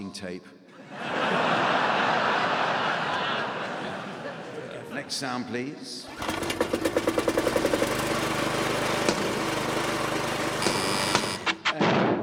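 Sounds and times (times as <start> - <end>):
speech: 0.1 - 1.3, 5.0 - 7.2
laughter: 0.7 - 6.2
car arriving with engine chugging: 6.1 - 11.6.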